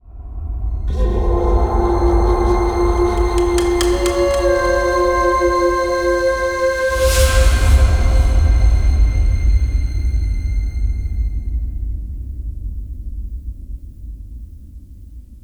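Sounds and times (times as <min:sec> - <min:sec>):
environment music stinger: 0:00.8 - 0:11.6.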